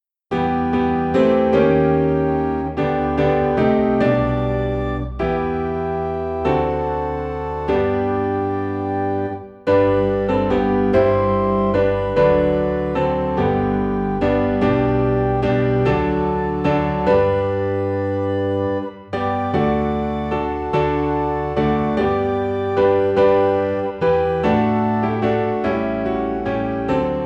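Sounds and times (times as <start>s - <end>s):
piano: 0.0s - 27.2s
organ: 0.3s - 27.2s.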